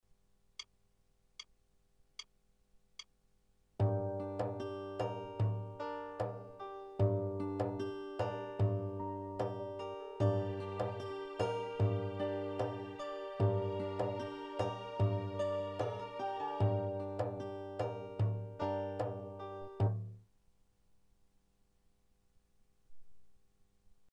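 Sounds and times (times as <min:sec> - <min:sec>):
fantasy rhythm on Gem WK8 SE keyboard: 0:03.8 - 0:20.0.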